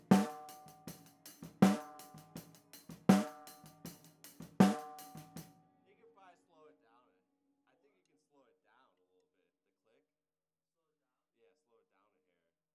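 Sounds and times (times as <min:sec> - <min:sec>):
snare drum: 0:00.0 - 0:05.4.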